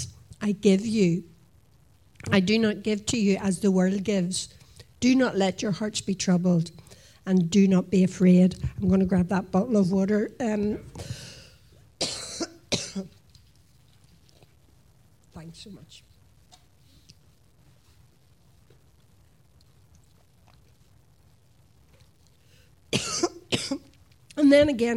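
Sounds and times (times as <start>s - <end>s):
speech: 0.4s - 1.3s, 2.2s - 11.3s, 15.4s - 16.1s, 23.7s - 24.9s
person coughing after swallowing something: 12.0s - 13.1s, 22.9s - 23.9s.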